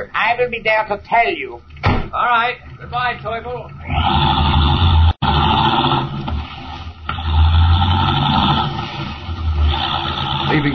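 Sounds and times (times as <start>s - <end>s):
speech: 0.3s - 4.6s, 10.5s - 10.7s
car driving rapidly away, radio drama effect: 2.6s - 10.7s.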